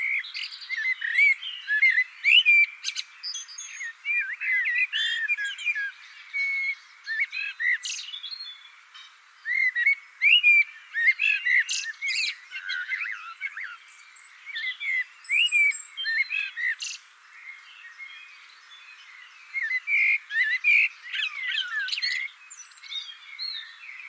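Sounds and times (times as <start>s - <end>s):
blackbird singing: 0.0s - 24.0s.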